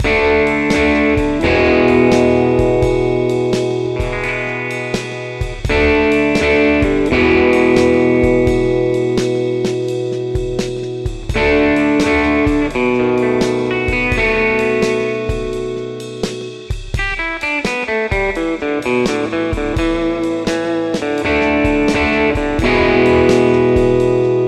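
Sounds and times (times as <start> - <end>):
Fender American Original 60 Jazzmaster bridge pickup: 0.0 - 24.4.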